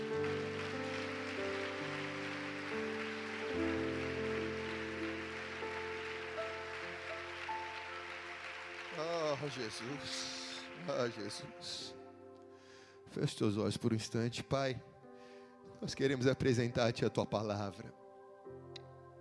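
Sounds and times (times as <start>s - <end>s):
audience applauding loudly: 0.0s - 12.0s
speech: 9.4s - 12.0s, 13.1s - 14.9s, 15.8s - 18.0s.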